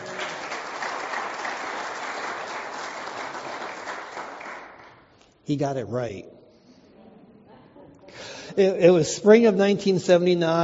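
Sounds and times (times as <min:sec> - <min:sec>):
audience applause celebrating an engagement: 0:00.0 - 0:04.9
speech: 0:05.5 - 0:06.3, 0:08.6 - 0:10.6.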